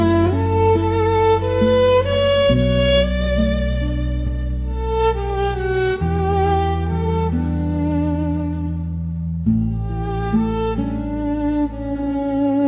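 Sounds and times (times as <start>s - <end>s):
seaside background music melody: 0.0s - 12.6s.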